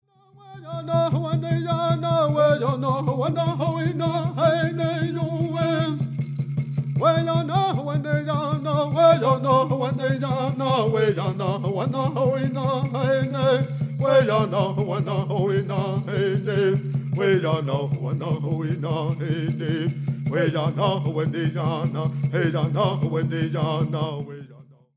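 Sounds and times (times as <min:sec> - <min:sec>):
prayer song: 0:00.1 - 0:06.3, 0:06.9 - 0:24.9.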